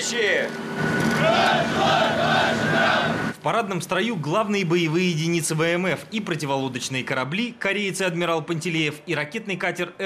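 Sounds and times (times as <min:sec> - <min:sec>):
submarine engine noise: 0:00.0 - 0:03.4
speech: 0:00.1 - 0:10.0
submarine crew shouting greeting in unison: 0:01.2 - 0:03.3.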